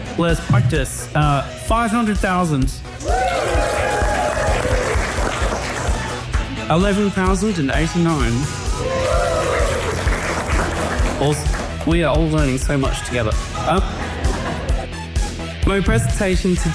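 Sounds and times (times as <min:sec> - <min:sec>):
speech: 0:00.2 - 0:03.6, 0:06.7 - 0:09.1, 0:11.2 - 0:14.0, 0:15.7 - 0:16.7
whoops and shouting voices: 0:03.0 - 0:05.2, 0:08.7 - 0:10.0
crowd clapping: 0:03.0 - 0:06.6, 0:08.8 - 0:12.3
laughter: 0:13.6 - 0:15.4.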